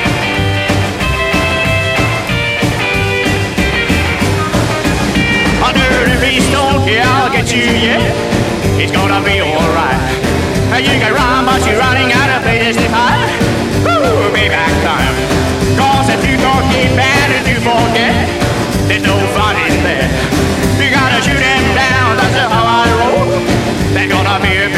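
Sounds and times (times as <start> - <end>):
rockabilly rock and roll music: 0.0 - 24.7.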